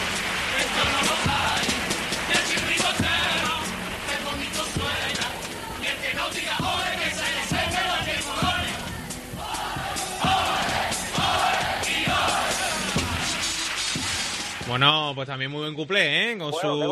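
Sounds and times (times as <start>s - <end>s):
crowd applauding: 0.0s - 8.4s, 9.5s - 15.0s
speech: 14.8s - 16.8s.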